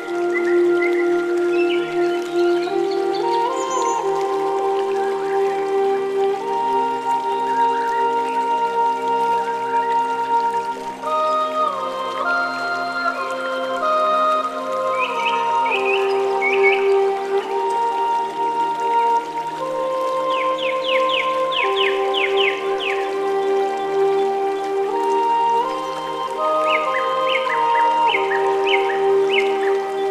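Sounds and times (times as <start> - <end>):
relaxing forest ambience: 0.0 - 30.0.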